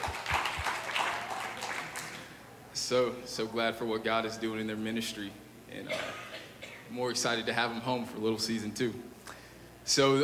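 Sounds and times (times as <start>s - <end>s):
audience hand clapping: 0.0s - 2.4s
speech: 2.9s - 6.3s, 6.9s - 9.2s, 9.8s - 10.2s.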